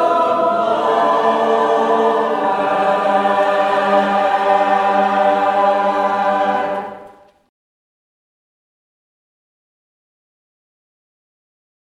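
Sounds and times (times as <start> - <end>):
English Christmas carol: 0.0 - 7.5.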